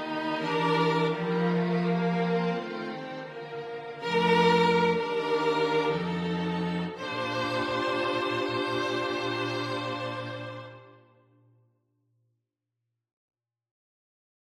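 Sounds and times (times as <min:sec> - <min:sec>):
strings: 0:00.0 - 0:11.2.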